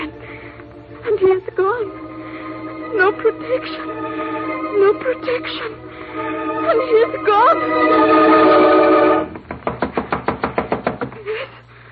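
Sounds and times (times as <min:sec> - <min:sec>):
speech: 0:01.1 - 0:02.0, 0:03.0 - 0:08.8
knocking: 0:09.4 - 0:11.1.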